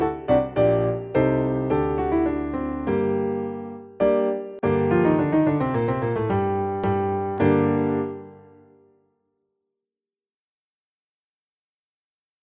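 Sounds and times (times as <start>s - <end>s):
baroque dance piece: 0.0s - 8.4s.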